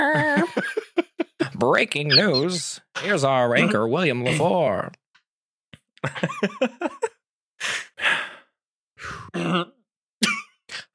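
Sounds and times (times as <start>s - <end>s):
laughter: 0.0s - 2.6s, 6.0s - 7.2s
speech: 1.6s - 5.0s, 6.0s - 7.1s, 9.3s - 9.8s
throat clearing: 9.3s - 9.8s.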